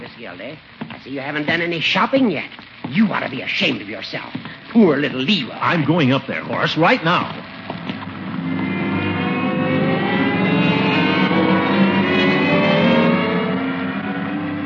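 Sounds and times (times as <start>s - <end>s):
speech: 0.2s - 7.5s
department store escalator whirring: 7.4s - 14.6s.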